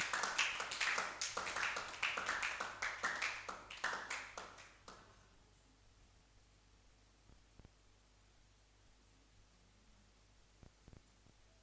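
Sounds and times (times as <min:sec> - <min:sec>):
audience clapping: 0:00.0 - 0:05.1.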